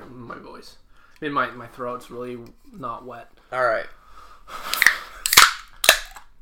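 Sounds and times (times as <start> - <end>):
speech: 0.3 - 4.7
beer can cracking open: 4.7 - 6.3.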